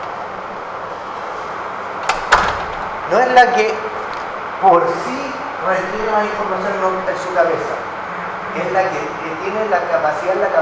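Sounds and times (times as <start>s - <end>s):
door being opened: 2.0s - 4.5s
speech: 3.1s - 3.9s, 4.6s - 7.9s, 8.6s - 10.6s.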